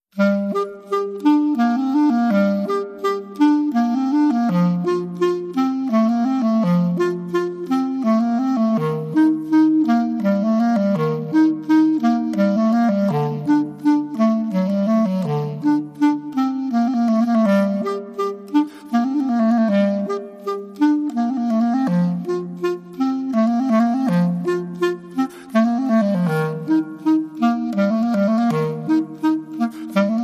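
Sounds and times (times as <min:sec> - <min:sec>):
Spanish Baroque music: 0:00.2 - 0:30.2.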